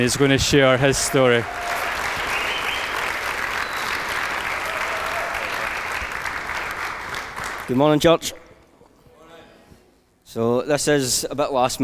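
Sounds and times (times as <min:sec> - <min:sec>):
speech: 0:00.0 - 0:02.0, 0:07.7 - 0:08.4, 0:10.3 - 0:11.8
church congregation applauding a speaker welcomed to the platform: 0:00.0 - 0:07.8.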